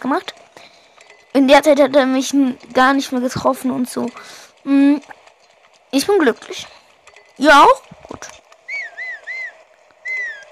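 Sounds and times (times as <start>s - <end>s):
speech: 0.0s - 0.4s, 1.4s - 5.2s, 5.9s - 6.8s, 7.4s - 8.4s
person whistling: 8.7s - 10.4s.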